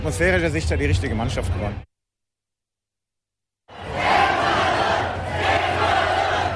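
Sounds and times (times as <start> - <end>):
speech: 0.0 - 1.9
football stadium crowd cheering after Germany vs Ecuador match: 3.7 - 6.5.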